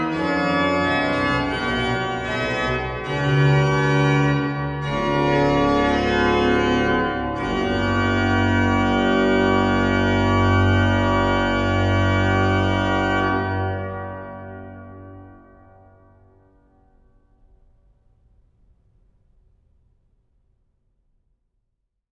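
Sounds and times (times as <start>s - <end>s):
organist playing a praeludium: 0.0s - 15.5s.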